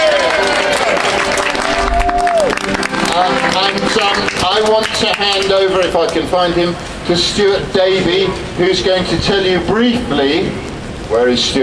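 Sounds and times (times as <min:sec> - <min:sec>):
crowd cheering: 0:00.0 - 0:06.0
speech: 0:04.5 - 0:11.6.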